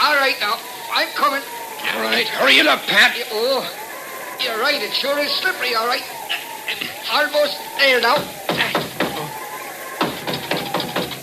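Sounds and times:
speech: 0.3s - 3.8s, 4.4s - 8.4s
knocks: 7.9s - 9.4s, 10.0s - 11.2s.

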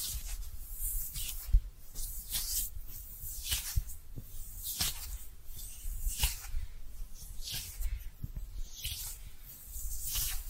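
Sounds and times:
brushing: 0.0s - 10.4s.

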